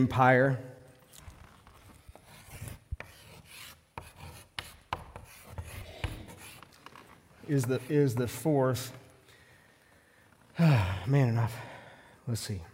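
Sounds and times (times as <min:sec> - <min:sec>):
speech: 0:00.0 - 0:00.7, 0:07.5 - 0:09.0, 0:10.6 - 0:11.7, 0:12.3 - 0:12.7
writing on a board: 0:01.7 - 0:08.5
writing tool tapping on the board surface: 0:03.0 - 0:06.7.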